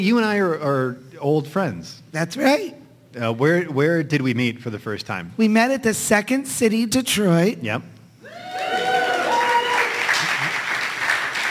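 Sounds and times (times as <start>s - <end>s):
speech: 0.0s - 7.9s
crowd clapping: 8.3s - 11.4s.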